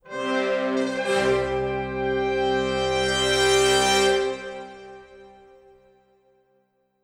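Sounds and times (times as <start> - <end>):
music fanfare: 0.1 - 5.6.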